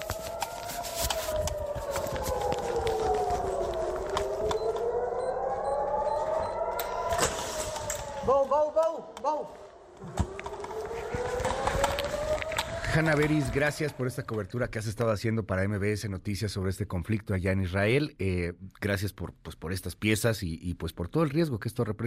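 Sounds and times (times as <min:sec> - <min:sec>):
air raid sirens wailing: 0:00.0 - 0:14.7
speech: 0:13.0 - 0:22.0.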